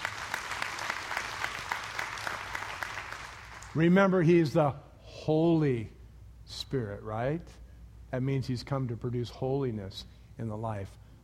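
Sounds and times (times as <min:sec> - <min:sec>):
audience clapping: 0:00.0 - 0:03.9
speech: 0:03.8 - 0:11.0.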